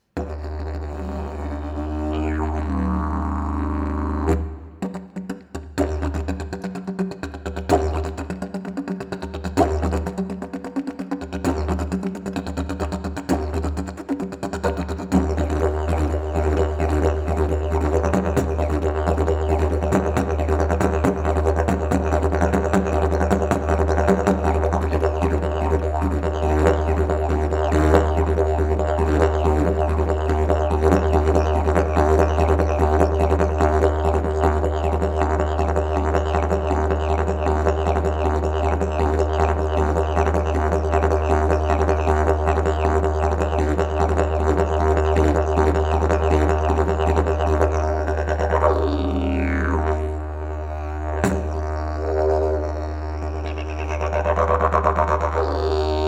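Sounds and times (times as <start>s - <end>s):
didgeridoo: 0.0s - 56.0s.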